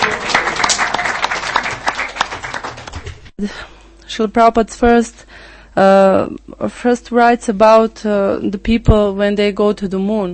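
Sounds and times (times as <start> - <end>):
audience applause: 0.0 - 3.3
speech: 3.4 - 10.3.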